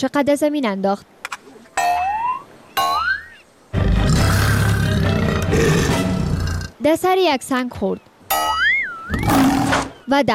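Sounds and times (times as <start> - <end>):
speech: 0.0 - 1.3, 6.8 - 8.1, 10.1 - 10.3
rising springy tones: 1.8 - 3.4, 8.3 - 10.1
leopard roar: 3.7 - 6.7, 9.2 - 10.0.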